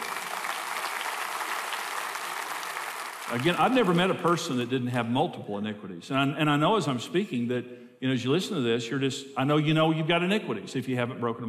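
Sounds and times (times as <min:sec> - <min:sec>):
large audience applause: 0:00.0 - 0:04.1
speech: 0:03.3 - 0:11.4.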